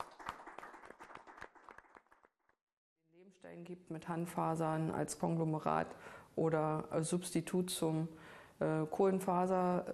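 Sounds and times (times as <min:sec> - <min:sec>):
crowd applauding: 0:00.0 - 0:02.3
speech: 0:03.3 - 0:09.9.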